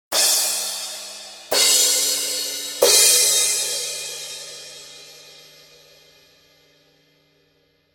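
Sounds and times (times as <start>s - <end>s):
Paiste crash cymbals: 0.1s - 6.7s.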